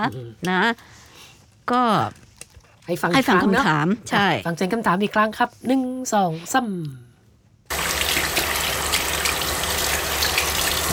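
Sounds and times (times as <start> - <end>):
speech: 0.0 - 1.0, 1.7 - 2.2, 2.9 - 7.1
water gushing from a tap: 7.7 - 10.9.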